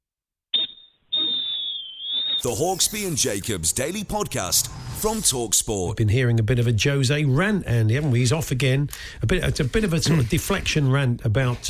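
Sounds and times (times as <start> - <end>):
referee's Fox 40 whistle full-time blasts: 0.5 - 2.5
speech: 2.4 - 11.6.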